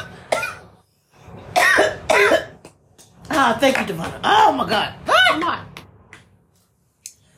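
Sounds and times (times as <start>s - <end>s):
person choking and coughing: 0.0s - 0.8s, 1.5s - 2.6s
speech: 3.4s - 5.7s.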